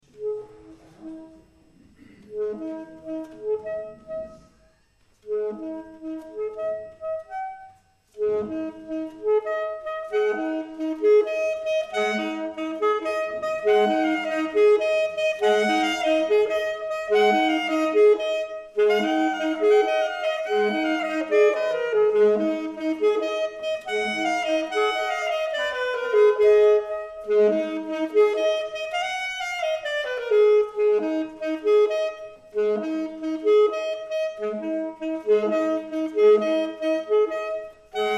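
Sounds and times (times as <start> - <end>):
saxophone: 0.1 - 38.1.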